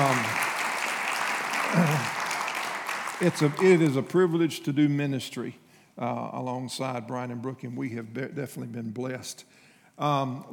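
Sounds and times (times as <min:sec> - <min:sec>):
church congregation applause for a speaker: 0:00.0 - 0:04.5
speech: 0:03.2 - 0:10.5.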